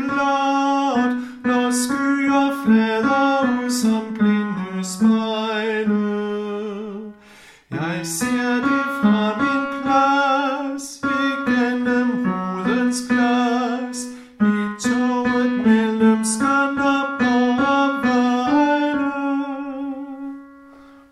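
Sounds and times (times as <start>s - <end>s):
tenor singing: 0.0s - 20.6s.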